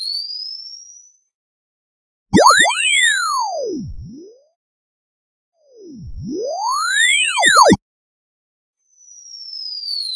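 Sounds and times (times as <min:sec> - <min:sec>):
bomb arming: 0:02.3 - 0:04.3, 0:05.7 - 0:07.8.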